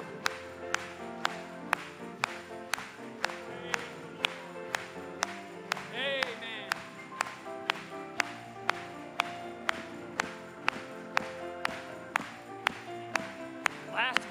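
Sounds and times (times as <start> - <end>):
audience clapping in unison: 0.0 - 14.2
music with singing voices: 0.0 - 14.2.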